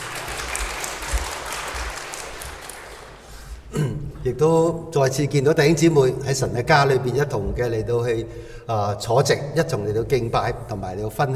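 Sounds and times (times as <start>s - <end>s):
room full of people applauding: 0.0s - 3.6s
speech: 4.3s - 11.3s.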